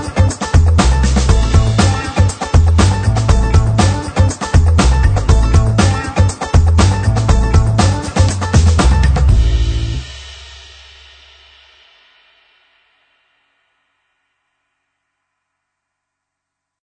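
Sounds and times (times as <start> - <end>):
funk music: 0.0 - 10.4.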